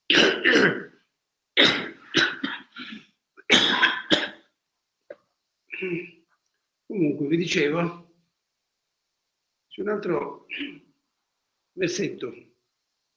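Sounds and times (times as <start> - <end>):
speaker coughing and clearing throat of phlegm: 0.1 - 1.0, 1.6 - 4.5, 5.1 - 6.3, 10.5 - 10.9
speech: 7.2 - 8.0, 9.8 - 10.8, 11.8 - 12.5.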